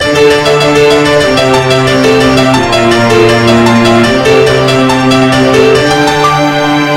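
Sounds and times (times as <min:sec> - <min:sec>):
game over sound: 0:00.0 - 0:06.8.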